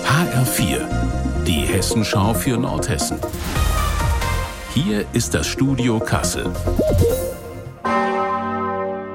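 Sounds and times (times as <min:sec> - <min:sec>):
speech: 0:00.2 - 0:03.8, 0:04.7 - 0:07.3
large church bell of the Martinskirche in Kassel ringing: 0:07.8 - 0:09.1.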